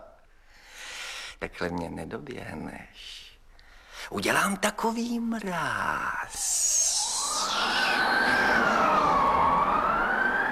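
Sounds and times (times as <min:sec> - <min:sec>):
speech: 0:01.4 - 0:03.3, 0:04.0 - 0:07.0
howling blizzard wind: 0:06.3 - 0:10.5.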